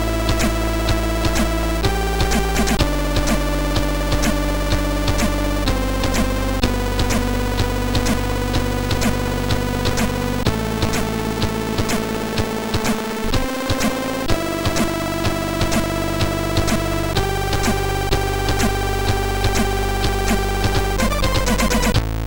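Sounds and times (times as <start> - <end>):
chiptune synthesizer sound chip: 0.0 - 22.1.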